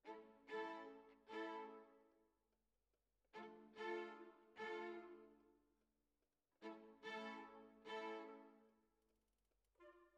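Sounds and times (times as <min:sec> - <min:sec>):
violins: 0:00.0 - 0:02.0, 0:03.3 - 0:05.5, 0:06.6 - 0:08.7.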